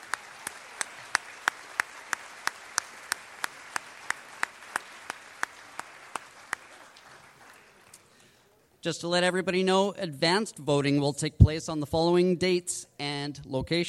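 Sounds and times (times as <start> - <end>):
audience applause: 0.0 - 8.2
speech: 8.8 - 13.8.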